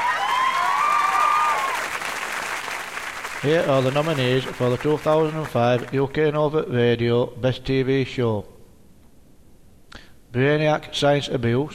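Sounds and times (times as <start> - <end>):
awards show audience applause for a presenter: 0.0 - 6.1
speech: 3.4 - 8.5, 10.3 - 11.7.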